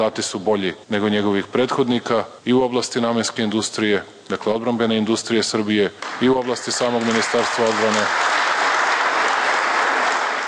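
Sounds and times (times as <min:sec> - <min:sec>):
speech: 0:00.0 - 0:08.4
applause from ruling party MPs in parliament: 0:06.0 - 0:10.4.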